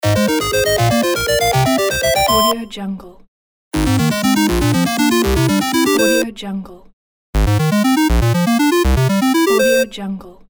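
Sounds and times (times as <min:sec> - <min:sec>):
eight-bit victory jingle: 0:00.0 - 0:02.6, 0:03.8 - 0:06.2, 0:07.4 - 0:09.9.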